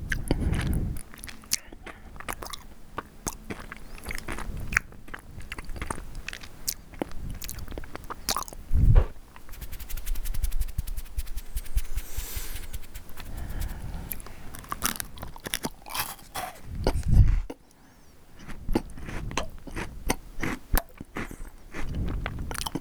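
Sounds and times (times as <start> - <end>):
crisp chewing and crunching of food: 0.0 - 22.8
heavy thumps: 8.8 - 9.2.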